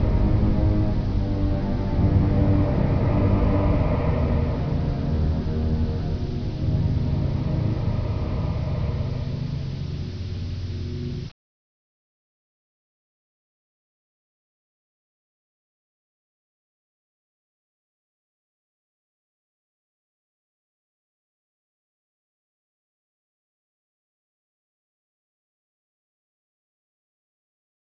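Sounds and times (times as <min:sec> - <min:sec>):
ambience: 0:00.0 - 0:11.4.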